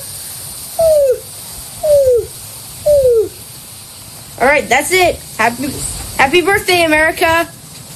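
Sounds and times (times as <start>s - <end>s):
voice imitating a greater roadrunner call: 0.8s - 1.3s, 1.8s - 3.4s
speech: 4.5s - 7.6s.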